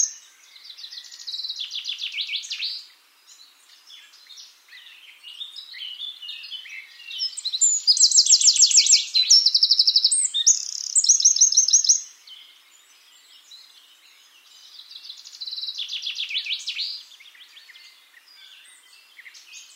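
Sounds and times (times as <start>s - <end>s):
Eurasian wren Troglodytes troglodytes singing: 0.0s - 19.7s.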